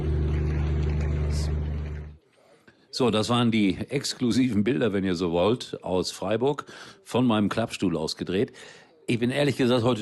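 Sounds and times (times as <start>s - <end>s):
generator hum: 0.0s - 2.2s
speech: 3.0s - 10.0s.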